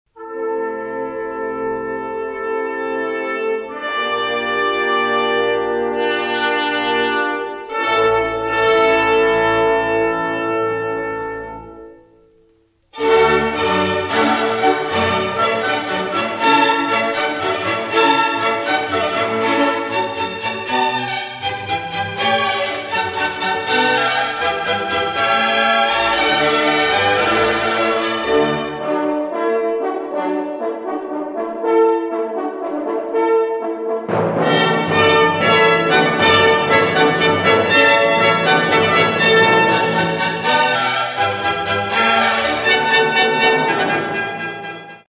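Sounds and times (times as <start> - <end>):
baroque orchestral suite movement in D major: 0.2 - 45.0.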